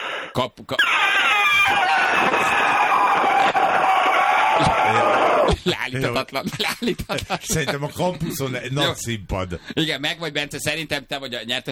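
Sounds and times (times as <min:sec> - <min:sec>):
speech: 0:00.3 - 0:11.7
person imitating an elephant trumpeting: 0:00.8 - 0:03.2.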